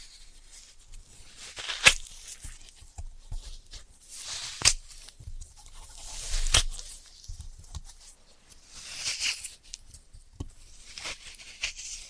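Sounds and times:
floral foam crumbling and rubbing: 0.0 - 12.0
floral foam snapping: 1.4 - 3.0, 6.0 - 7.0.

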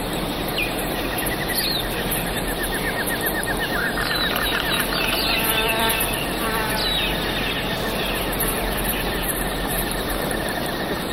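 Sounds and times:
birds chirping: 0.0 - 11.1
rapid trilled bird calls and sweeping whistles: 0.0 - 11.1
high insect-like buzz: 3.1 - 10.9.

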